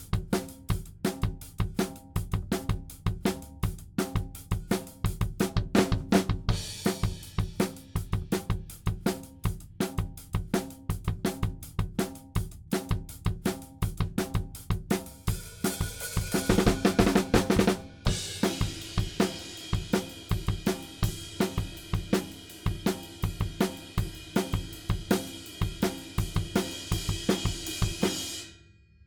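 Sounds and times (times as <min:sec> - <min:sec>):
drums: 0:00.0 - 0:29.0.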